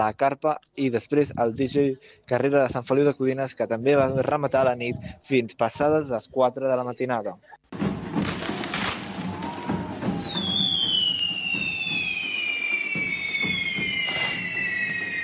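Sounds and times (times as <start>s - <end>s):
speech: 0.0s - 7.6s
steady noise: 0.0s - 15.2s
fireworks at the Diables de Castellterçol correfoc fire run: 7.7s - 15.2s
long high falling whistling tone: 9.8s - 15.2s.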